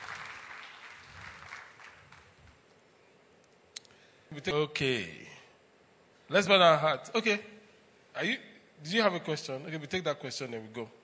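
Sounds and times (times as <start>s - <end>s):
audience clapping: 0.0s - 2.7s
speech: 4.3s - 5.3s, 6.3s - 7.5s, 8.2s - 11.0s.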